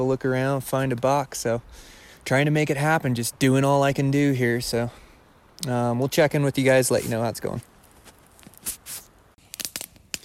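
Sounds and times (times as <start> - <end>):
speech: 0.0 - 5.0, 5.6 - 7.7
crackling campfire: 0.0 - 10.2.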